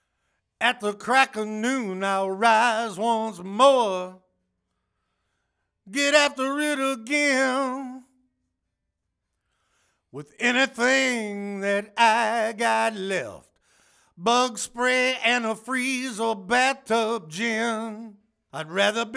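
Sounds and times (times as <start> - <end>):
lead vocals: 0.6 - 4.2, 5.9 - 8.1, 10.2 - 13.5, 14.2 - 19.1.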